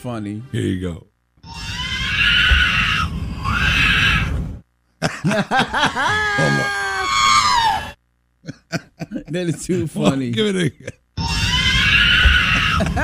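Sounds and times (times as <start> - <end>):
speech: 0.0 - 1.6, 5.0 - 7.2, 8.4 - 11.0, 12.8 - 13.0
baby crying and wailing: 1.4 - 4.3, 5.8 - 8.0, 11.2 - 13.0
laughter: 5.0 - 7.1, 8.4 - 11.0, 12.4 - 13.0.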